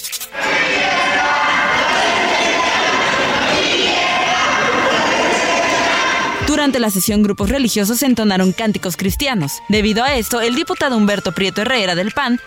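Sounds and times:
large crowd celebrating, cheering and shouting: 0.3 - 6.8
speech: 6.6 - 12.4.

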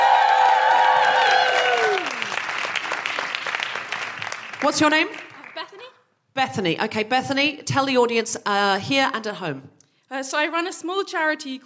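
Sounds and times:
audience applause: 0.0 - 5.8
speech: 4.6 - 5.3, 6.4 - 11.6.

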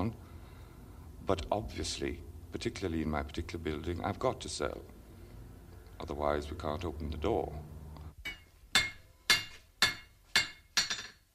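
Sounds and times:
speech: 1.3 - 5.0, 6.0 - 7.7
hammer striking metal on an anvil: 8.2 - 11.2.

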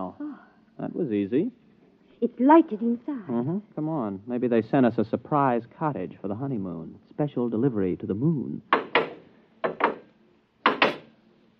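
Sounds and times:
speech: 1.0 - 1.6, 2.2 - 8.8
door closing: 10.7 - 11.1.

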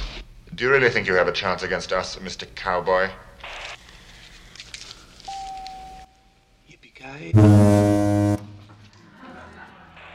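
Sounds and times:
speech: 0.6 - 3.6, 7.2 - 8.0
censor beep over swear words: 7.4 - 8.6
laughter: 8.9 - 10.1.

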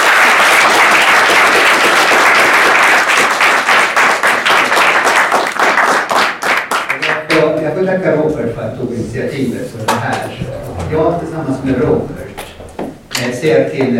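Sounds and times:
audience applause: 0.0 - 7.4
speech: 8.0 - 12.2, 13.3 - 13.9.

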